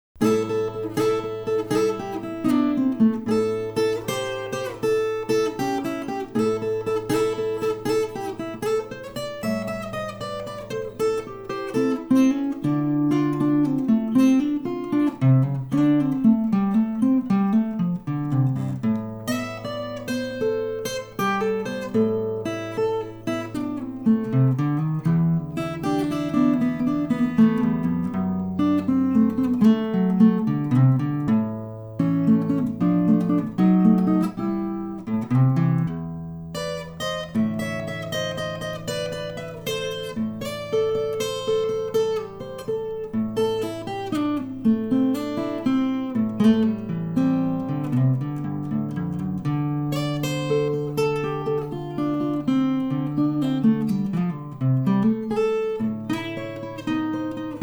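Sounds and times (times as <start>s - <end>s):
blues music: 0.2s - 57.6s.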